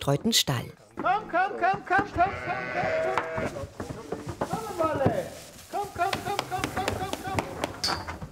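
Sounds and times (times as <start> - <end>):
speech: 0.0 - 3.9
pregnant sheep bleating: 2.0 - 3.6
faint shuffling: 3.3 - 7.8.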